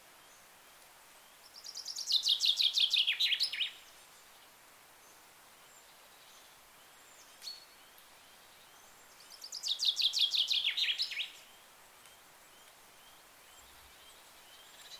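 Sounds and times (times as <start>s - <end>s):
bird chirping: 1.4s - 4.0s, 5.7s - 14.9s.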